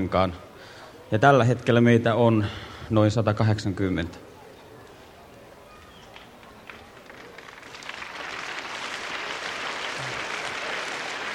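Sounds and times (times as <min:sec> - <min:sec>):
speech: 0:00.0 - 0:00.5, 0:01.1 - 0:04.2
audience applause: 0:06.2 - 0:11.3.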